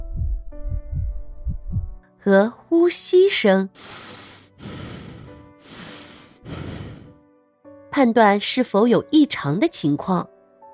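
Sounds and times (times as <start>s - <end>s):
quick heartbeat through a stethoscope: 0.0s - 2.0s
speech: 2.2s - 4.7s, 8.0s - 10.3s.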